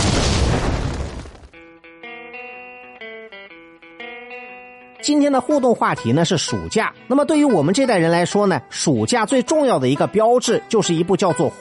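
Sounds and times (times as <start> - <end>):
explosion sound effect: 0.0 - 1.6
speech: 5.0 - 11.6.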